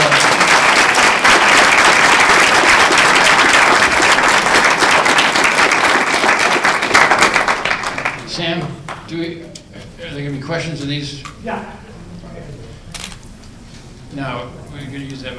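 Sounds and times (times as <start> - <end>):
audience applause: 0.0 - 9.0
speech: 10.5 - 11.8, 14.1 - 15.3.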